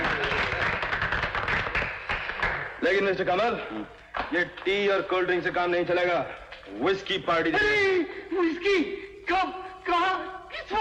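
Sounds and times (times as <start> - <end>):
office staff clapping: 0.0 - 4.9
speech: 2.8 - 10.7.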